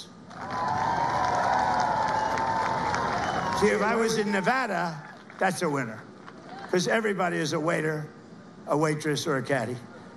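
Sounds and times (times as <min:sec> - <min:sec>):
shouts and whoops: 0:00.3 - 0:05.2
crowd clapping and cheering: 0:00.3 - 0:06.8
speech: 0:03.6 - 0:06.1, 0:06.7 - 0:09.9.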